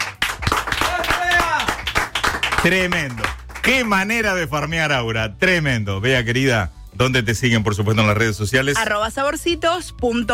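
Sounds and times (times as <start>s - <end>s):
applause: 0.0s - 4.3s
speech: 2.6s - 10.3s.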